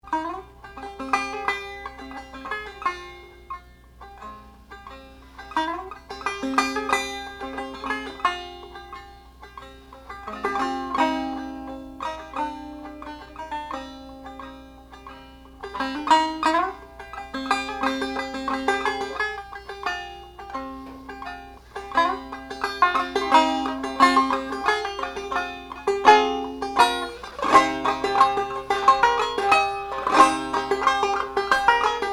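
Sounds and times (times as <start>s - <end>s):
banjo: 0.0s - 32.1s.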